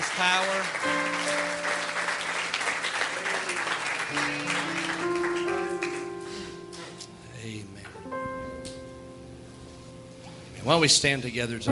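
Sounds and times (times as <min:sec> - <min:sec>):
audience hand clapping: 0:00.0 - 0:07.0
speech: 0:00.2 - 0:01.0, 0:10.7 - 0:11.7
organ or keyboard chords: 0:00.6 - 0:11.7.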